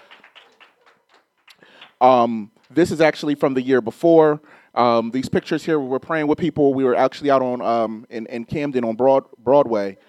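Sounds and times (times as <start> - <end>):
scattered clapping from a group: 0.0 - 2.8
speech: 2.0 - 10.0.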